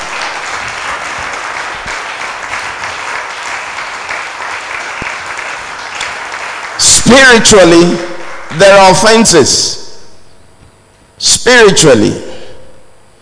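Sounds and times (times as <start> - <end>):
church congregation clapping during a sermon: 0.0 - 9.6
speech: 7.1 - 9.8, 11.2 - 12.3.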